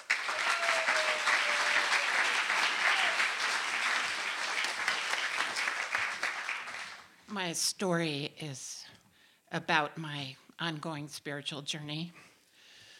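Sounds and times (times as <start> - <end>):
crowd applauding: 0.0 - 7.1
speech: 7.4 - 8.8, 9.5 - 12.3.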